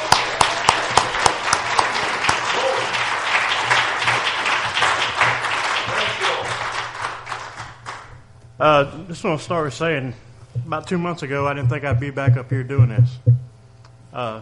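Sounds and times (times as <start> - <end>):
audience clapping hands in praise: 0.0 - 8.1
speech: 8.6 - 13.4, 14.2 - 14.3.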